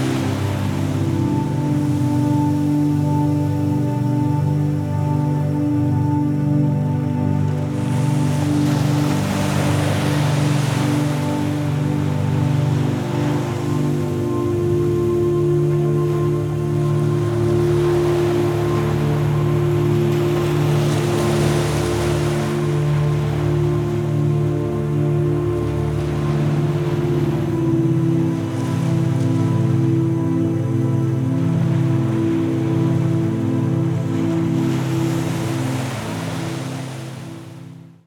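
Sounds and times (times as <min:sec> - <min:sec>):
gentle sleep music: 0:00.0 - 0:38.0
ocean waves: 0:00.0 - 0:38.0.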